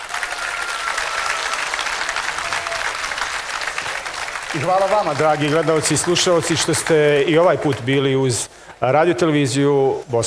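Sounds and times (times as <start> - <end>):
large audience applauding at the end of a song concert at Ilidža: 0.0 - 8.0
speech: 4.5 - 10.2.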